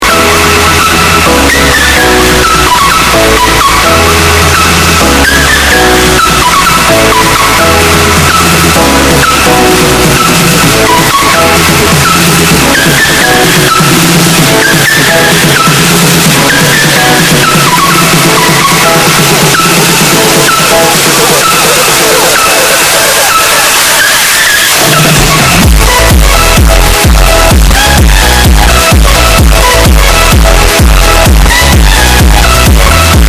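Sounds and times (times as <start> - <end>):
distorted loud audio: 0.0 - 33.2.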